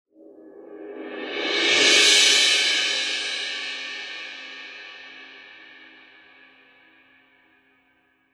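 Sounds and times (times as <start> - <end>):
cymbal roll: 0.8 - 6.8.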